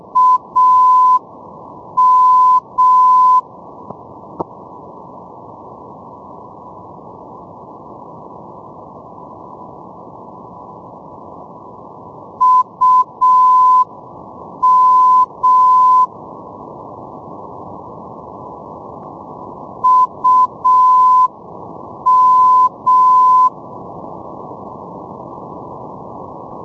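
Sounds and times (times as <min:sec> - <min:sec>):
NDB radio beacon signal: 0:00.1 - 0:01.2, 0:02.0 - 0:03.4, 0:12.4 - 0:13.9, 0:14.6 - 0:16.1, 0:19.8 - 0:21.3, 0:22.1 - 0:23.6.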